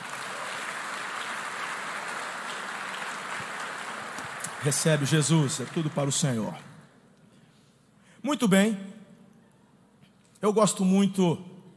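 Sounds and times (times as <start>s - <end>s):
large audience applauding: 0.0s - 6.7s
speech: 4.6s - 6.7s, 8.2s - 8.9s, 10.4s - 11.5s.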